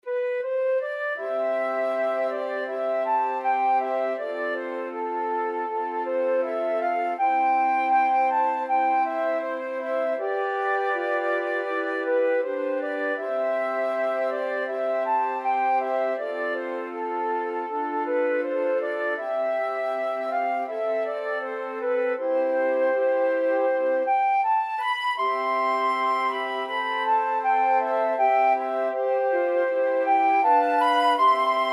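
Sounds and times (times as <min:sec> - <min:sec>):
flute quartet: 0:00.0 - 0:31.7.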